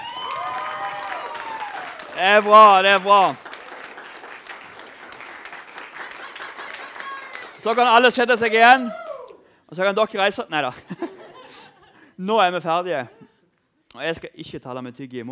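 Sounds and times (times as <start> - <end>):
audience applause: 0.0 - 9.2
speech: 2.2 - 3.4, 7.6 - 9.0, 9.7 - 11.0, 12.2 - 13.3, 14.0 - 15.3
laughter: 6.0 - 7.2, 10.7 - 12.1.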